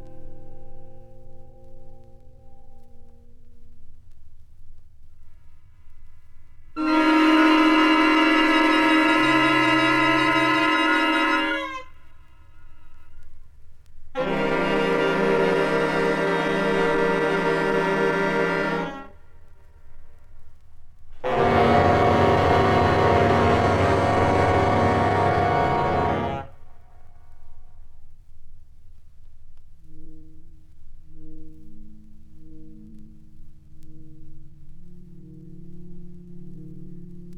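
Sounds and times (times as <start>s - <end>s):
saxophone orchestra: 6.8s - 11.9s, 14.2s - 19.2s, 21.2s - 26.6s.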